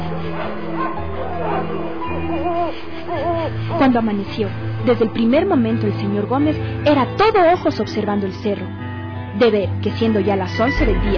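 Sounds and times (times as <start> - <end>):
dogs barking and howling: 0.0 - 4.0
speech: 3.8 - 8.8, 9.4 - 11.1.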